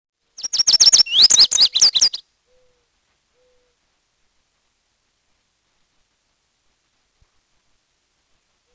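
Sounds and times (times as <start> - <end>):
bird song of high sharp slurred whistles: 0.4 - 2.8.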